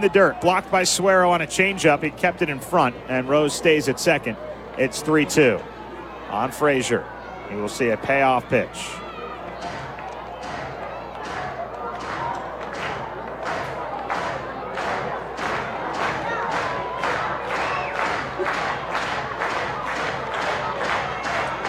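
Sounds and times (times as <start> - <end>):
speech: 0.0 - 9.0
baseball fans clapping in unison: 8.5 - 21.6.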